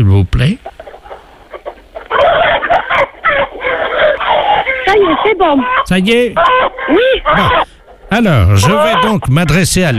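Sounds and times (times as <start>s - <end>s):
speech: 0.0s - 0.8s, 4.9s - 9.9s
chickens clucking in a henhouse: 0.0s - 9.9s.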